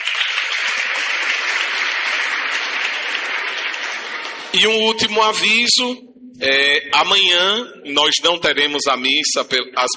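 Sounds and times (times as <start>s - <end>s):
audience applause: 0.0s - 4.6s
speech: 4.6s - 9.9s.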